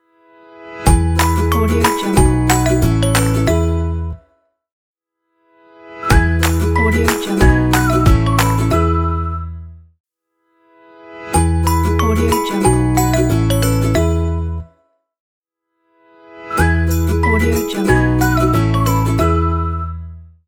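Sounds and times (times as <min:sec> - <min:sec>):
happy logo jingle: 0:00.9 - 0:04.0, 0:06.1 - 0:08.9, 0:11.4 - 0:14.5, 0:16.6 - 0:19.3.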